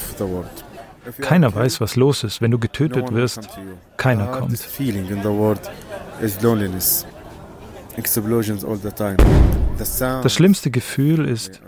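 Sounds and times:
speech: 0.2s - 7.1s, 8.0s - 11.6s
deep booming detonation in Gaza: 9.2s - 10.2s.

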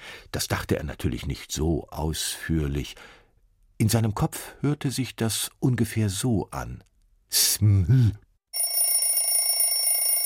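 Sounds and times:
speech: 0.4s - 3.2s, 3.8s - 8.2s
alarm clock ringing: 8.5s - 10.2s.

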